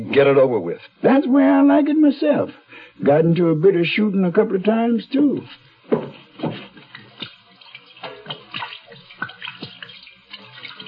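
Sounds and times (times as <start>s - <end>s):
speech: 0.1s - 6.6s
gin poured over hands to wash them: 6.4s - 10.8s.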